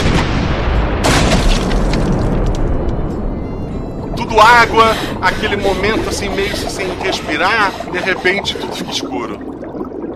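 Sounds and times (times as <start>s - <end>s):
cannonball explosion striking a small boat: 0.0s - 3.0s
laughter: 4.2s - 9.3s
speech: 4.4s - 9.5s.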